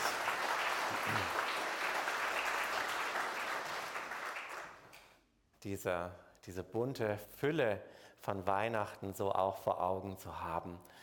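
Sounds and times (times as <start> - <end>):
audience applause: 0.0 - 4.8
speech: 5.6 - 11.0.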